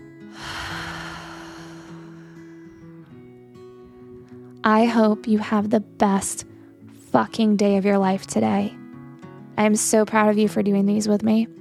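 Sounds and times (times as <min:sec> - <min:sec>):
quiet music with sustained low tones: 0:00.0 - 0:11.5
deep breath in and long exhale: 0:00.3 - 0:03.1
speech: 0:04.7 - 0:06.5, 0:07.1 - 0:08.8, 0:09.6 - 0:11.5.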